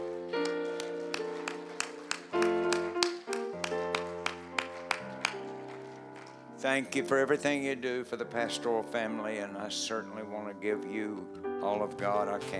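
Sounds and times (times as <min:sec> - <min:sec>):
rhythmic hand clapping: 0:00.0 - 0:06.5
sustained organ chords: 0:00.0 - 0:12.5
speech: 0:06.6 - 0:12.5.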